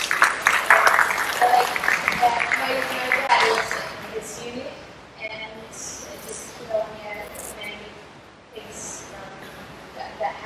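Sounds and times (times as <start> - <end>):
audience applause: 0.0 - 3.8
speech: 1.6 - 4.8.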